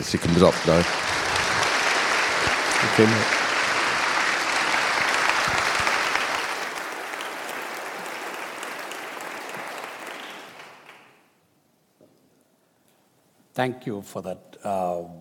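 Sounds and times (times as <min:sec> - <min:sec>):
speech: 0:00.0 - 0:01.2, 0:02.8 - 0:03.4, 0:13.6 - 0:15.1
audience applauding: 0:00.0 - 0:11.4.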